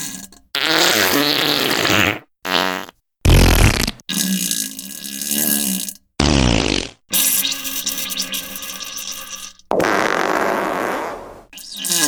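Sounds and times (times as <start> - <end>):
wet farting: 0.6 - 4.0, 6.2 - 7.0, 9.7 - 12.0.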